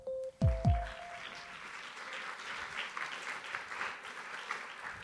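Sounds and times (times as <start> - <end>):
audience clapping: 0.4 - 5.0.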